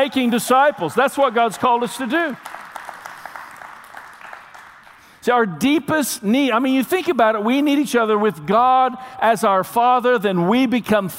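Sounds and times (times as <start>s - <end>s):
speech: 0.0s - 2.6s, 5.2s - 11.1s
crowd clapping: 0.0s - 5.2s.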